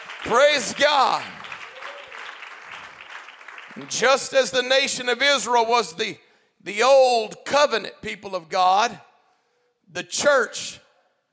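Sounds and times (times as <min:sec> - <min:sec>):
audience clapping hands: 0:00.0 - 0:04.7
speech: 0:00.2 - 0:01.4, 0:03.8 - 0:09.1, 0:09.9 - 0:10.8.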